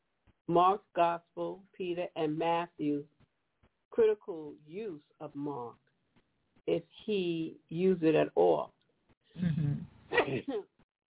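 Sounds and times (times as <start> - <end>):
speech: 0.5 - 3.2, 3.9 - 5.8, 6.6 - 8.8, 10.3 - 10.7
person sneezing: 9.4 - 10.4.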